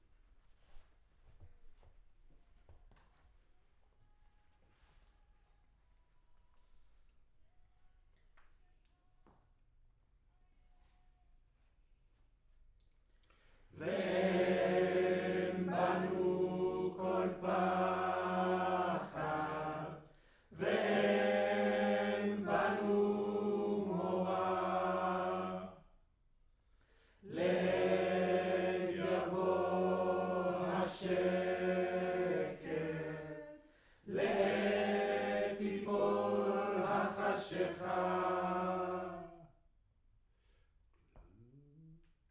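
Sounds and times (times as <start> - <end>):
choir singing in room: 13.8 - 25.9, 27.2 - 39.5.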